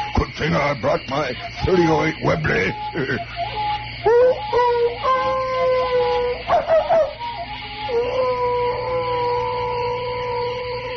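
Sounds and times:
speech: 0:00.4 - 0:04.2
hounds howling: 0:03.4 - 0:10.9
hounds barking or yelping: 0:06.4 - 0:07.3.

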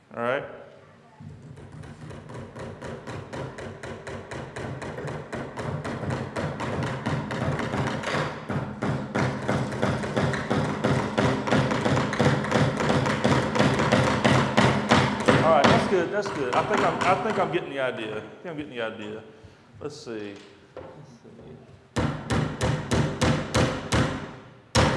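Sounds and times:
hammer blows driving nails in: 0:01.2 - 0:17.5, 0:22.0 - 0:24.9
speech: 0:16.0 - 0:20.6.

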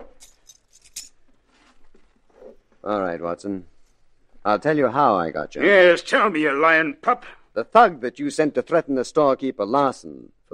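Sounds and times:
handcuffs clicking onto a suspect in a radio drama: 0:00.0 - 0:01.2
rustling: 0:00.2 - 0:02.9
speech: 0:02.8 - 0:03.7, 0:04.4 - 0:10.5.

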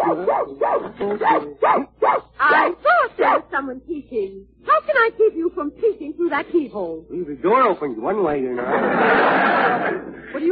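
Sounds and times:
little dog barking shut in a room: 0:00.0 - 0:03.4
speech: 0:00.1 - 0:10.5
laughter: 0:08.5 - 0:10.5.

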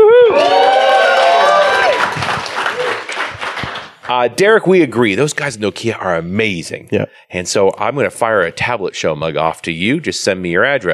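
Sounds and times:
people cheering: 0:00.0 - 0:03.9
applause: 0:00.4 - 0:04.2
speech: 0:04.2 - 0:10.9.

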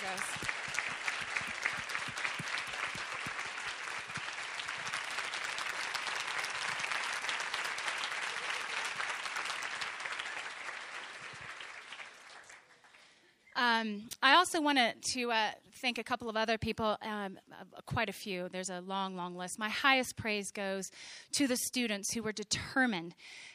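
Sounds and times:
applause from a large audience: 0:00.0 - 0:13.2
speech: 0:14.2 - 0:23.5.

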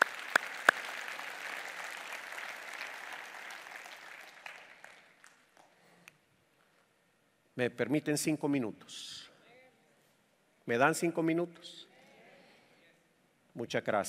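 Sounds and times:
audience applause: 0:00.0 - 0:05.7
speech: 0:07.6 - 0:09.2, 0:10.7 - 0:11.9, 0:13.6 - 0:14.0.

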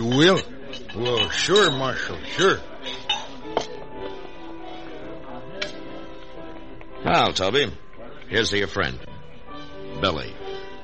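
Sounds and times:
bottle and glass set down on a bar: 0:00.0 - 0:03.8
low murmur: 0:00.0 - 0:08.8
speech: 0:00.1 - 0:02.7, 0:07.0 - 0:09.1, 0:10.0 - 0:10.4.

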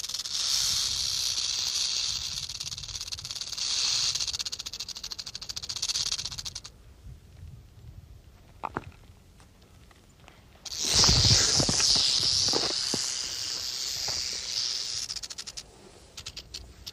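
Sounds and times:
rattlesnake rattling: 0:00.0 - 0:06.8, 0:10.6 - 0:16.9.

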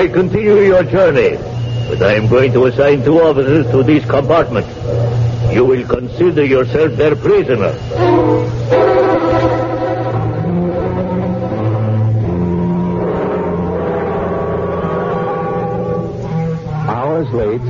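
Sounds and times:
speech: 0:00.0 - 0:09.0, 0:17.3 - 0:17.6
train pulling into a station in Athens: 0:00.0 - 0:17.6.

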